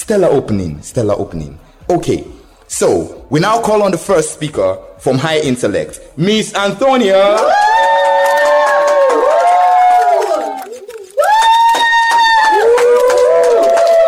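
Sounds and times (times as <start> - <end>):
speech: 0.1 - 7.7
audience applause and cheering: 7.1 - 14.0.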